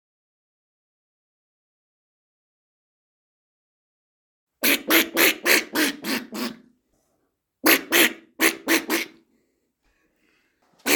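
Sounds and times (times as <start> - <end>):
peafowl honking: 4.6 - 6.6, 7.7 - 9.1.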